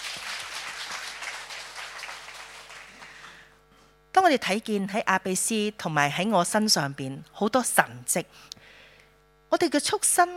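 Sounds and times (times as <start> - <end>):
audience applause: 0.0 - 3.5
speech: 4.2 - 8.6, 9.5 - 10.3.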